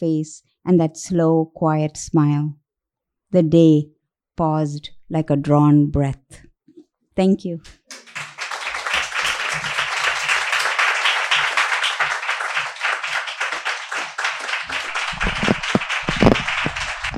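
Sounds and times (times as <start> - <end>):
speech: 0.0 - 2.6, 3.3 - 6.5, 7.2 - 8.2
audience applause: 7.8 - 17.1.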